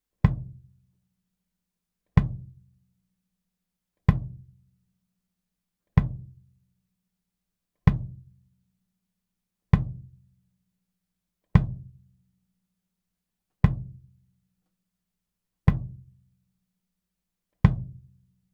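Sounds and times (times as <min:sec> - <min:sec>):
kick drum: 0:00.2 - 0:00.8, 0:02.2 - 0:02.7, 0:04.0 - 0:04.6, 0:06.0 - 0:06.5, 0:07.8 - 0:08.4, 0:09.7 - 0:10.2, 0:11.5 - 0:12.1, 0:13.6 - 0:14.2, 0:15.6 - 0:16.2, 0:17.6 - 0:18.3.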